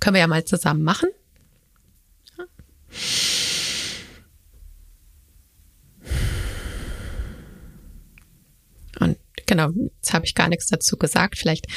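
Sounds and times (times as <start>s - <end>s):
speech: 0.0s - 1.2s, 9.6s - 11.7s
slow paced breathing during a breathing exercise: 2.9s - 4.3s, 6.0s - 8.2s.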